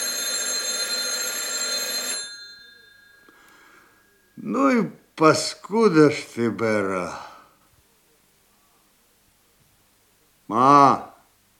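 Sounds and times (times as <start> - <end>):
alarm clock ringing: 0.0 - 4.5
speech: 4.4 - 7.3, 10.5 - 11.1.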